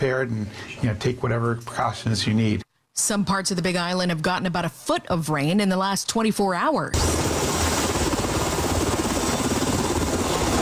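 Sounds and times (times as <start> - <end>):
speech: 0.0 - 7.4
Black Hawk helicopter rotor chopping: 7.0 - 10.6.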